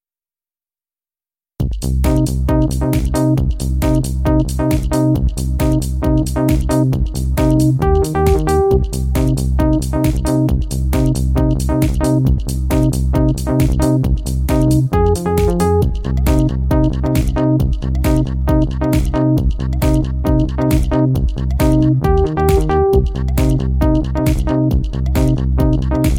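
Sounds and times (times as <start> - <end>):
bass lead synth: 1.6 - 26.1.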